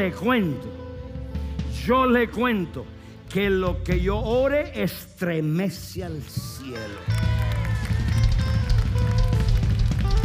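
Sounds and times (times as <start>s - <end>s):
speech: 0.0s - 0.8s, 1.8s - 7.3s
applause: 6.5s - 10.2s.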